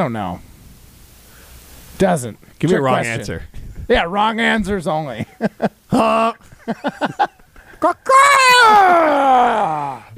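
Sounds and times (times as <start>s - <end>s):
speech: 0.0s - 0.5s, 2.0s - 10.0s
laughter: 5.2s - 8.1s
person gargling imitating a flamingo call: 5.9s - 6.4s.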